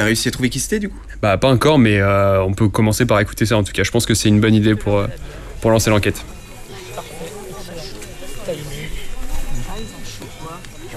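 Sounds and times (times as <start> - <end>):
speech: 0.0 - 6.4
low murmur: 0.0 - 10.9
cowbells clanking: 5.1 - 10.9.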